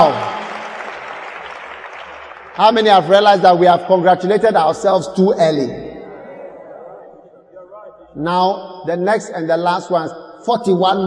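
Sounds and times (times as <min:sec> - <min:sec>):
audience applause: 0:00.0 - 0:03.3
speech: 0:02.6 - 0:05.9, 0:08.2 - 0:11.0.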